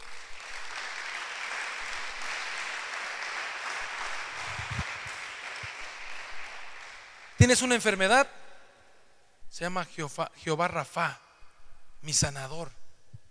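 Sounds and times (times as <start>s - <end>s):
crowd applause: 0.0s - 7.4s
speech: 7.5s - 8.4s, 9.6s - 11.2s, 12.0s - 12.8s.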